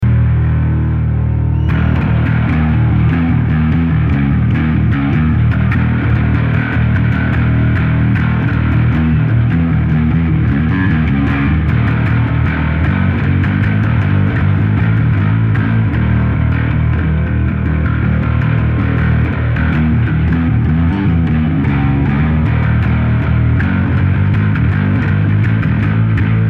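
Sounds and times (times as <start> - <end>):
bass solo: 0.0 - 26.4.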